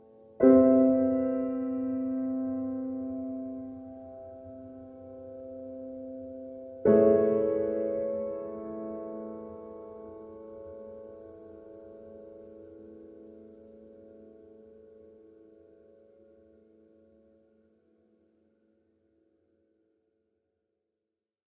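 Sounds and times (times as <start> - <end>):
short piano pieces: 0.0 - 14.5.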